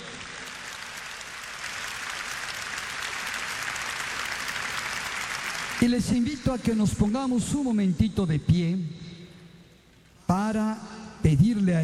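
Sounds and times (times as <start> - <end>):
crowd applauding: 0.0 - 6.8
speech: 5.8 - 9.0, 10.3 - 11.8.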